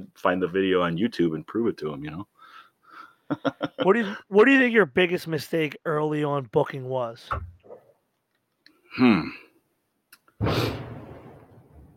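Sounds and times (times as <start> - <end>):
speech: 0.0 - 2.4, 3.3 - 7.6, 9.0 - 9.4, 10.4 - 10.9
laughter: 3.3 - 4.2
throaty vocal noise: 8.9 - 9.5
firework exploding: 10.4 - 11.9.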